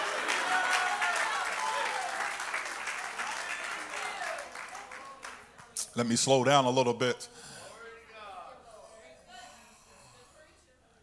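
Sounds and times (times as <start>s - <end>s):
audience clapping hands: 0.0s - 6.2s
speech: 6.0s - 7.5s.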